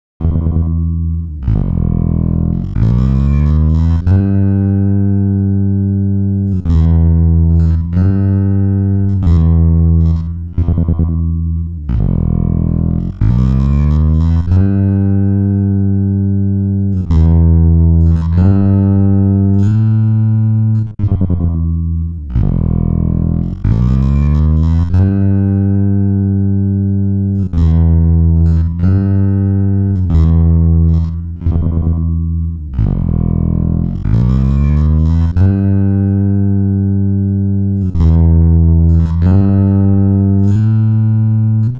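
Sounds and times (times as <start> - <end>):
bass: 0.0 - 41.7.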